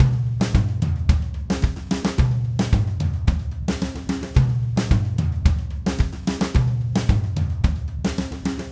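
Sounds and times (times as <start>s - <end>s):
DW Red Maple drum kit groove: 0.0s - 8.7s.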